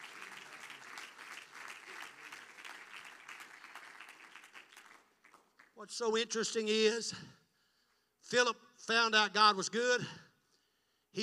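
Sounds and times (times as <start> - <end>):
audience clapping hands: 0.0 - 6.0
speech: 5.8 - 7.4, 8.3 - 10.2.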